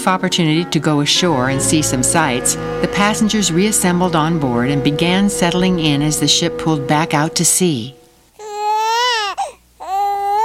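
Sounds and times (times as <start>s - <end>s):
speech: 0.0s - 8.0s
baby crying: 8.4s - 10.4s.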